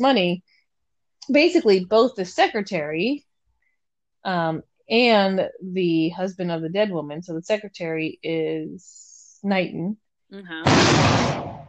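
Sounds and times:
speech: 0:00.0 - 0:00.5, 0:01.3 - 0:03.3, 0:04.2 - 0:11.6
firework exploding outside: 0:10.6 - 0:11.6.

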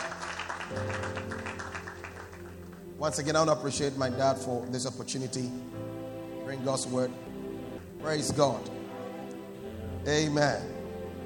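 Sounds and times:
audience clapping hands: 0:00.0 - 0:02.9
speech: 0:00.7 - 0:01.4, 0:03.0 - 0:05.9, 0:06.5 - 0:07.4, 0:08.0 - 0:08.7, 0:10.0 - 0:10.7
low organ-like chord: 0:00.7 - 0:11.2.

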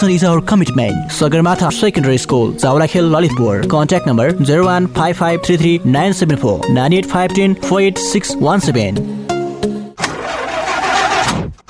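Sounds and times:
speech: 0:00.0 - 0:09.3
old broken-down car engine starting: 0:10.0 - 0:11.6.

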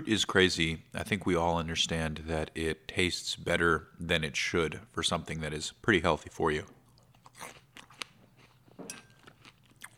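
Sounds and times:
speech: 0:00.0 - 0:06.8, 0:07.4 - 0:07.6
crisp sliced apple being bitten and chewed: 0:06.9 - 0:09.9.

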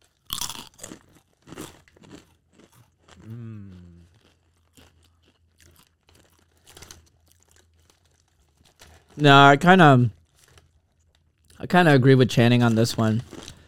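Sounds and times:
crunching and chewing spicy rolled tortilla chips: 0:00.0 - 0:13.6
person humming: 0:03.2 - 0:04.0
speech: 0:09.2 - 0:10.2, 0:11.7 - 0:13.3.

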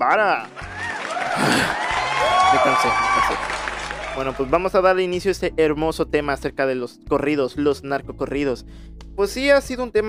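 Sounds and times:
speech: 0:00.0 - 0:00.6, 0:02.5 - 0:10.0
applause: 0:00.2 - 0:04.6.

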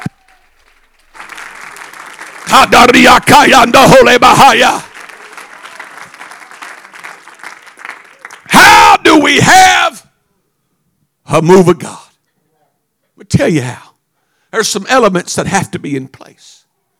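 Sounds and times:
audience clapping: 0:00.0 - 0:08.8
cheering and raised voices: 0:00.0 - 0:10.0
speech: 0:02.5 - 0:04.9, 0:11.3 - 0:12.0, 0:13.2 - 0:13.9, 0:14.5 - 0:16.6.

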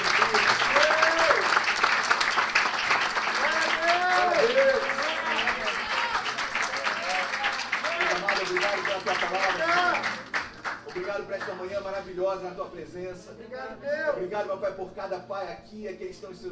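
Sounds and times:
audience applause: 0:00.0 - 0:11.6
speech: 0:12.8 - 0:16.5.

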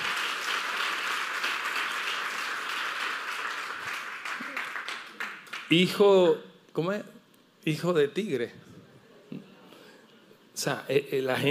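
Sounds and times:
crowd applauding: 0:00.0 - 0:05.8
speech: 0:05.7 - 0:08.6, 0:10.6 - 0:11.4.

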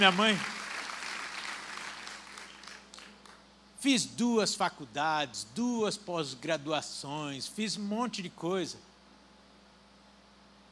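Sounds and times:
speech: 0:00.0 - 0:00.6, 0:03.8 - 0:08.9
audience applause: 0:00.0 - 0:03.4.

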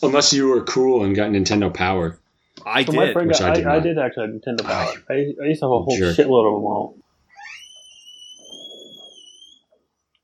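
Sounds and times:
speech: 0:00.0 - 0:07.0
squeaky sliding back door being shut: 0:07.4 - 0:09.7.

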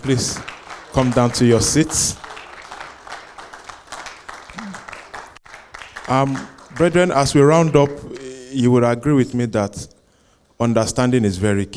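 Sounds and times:
speech: 0:00.0 - 0:02.2, 0:06.1 - 0:09.9, 0:10.6 - 0:11.7
audience applauding: 0:00.0 - 0:08.3.

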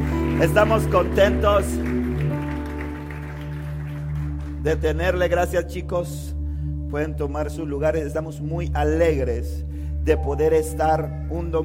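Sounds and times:
audience applauding: 0:00.0 - 0:05.2
speech: 0:00.4 - 0:01.9, 0:04.6 - 0:06.3, 0:06.9 - 0:11.6.

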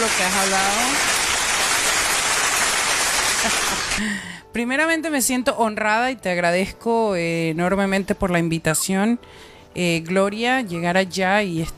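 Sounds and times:
speech: 0:00.0 - 0:01.1, 0:03.4 - 0:11.7
applause: 0:00.0 - 0:04.2
laughter: 0:03.2 - 0:04.0.

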